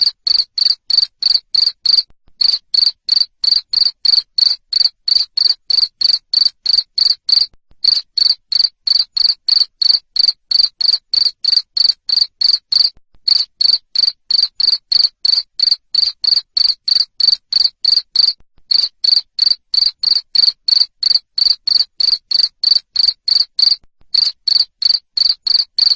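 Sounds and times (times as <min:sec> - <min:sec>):
cricket chirping: 0:00.0 - 0:25.9.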